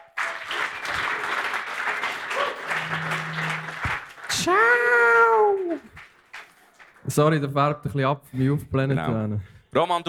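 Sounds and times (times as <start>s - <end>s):
audience clapping: 0.0s - 7.1s
low hum: 2.7s - 4.1s
speech: 4.4s - 6.0s, 7.2s - 10.0s.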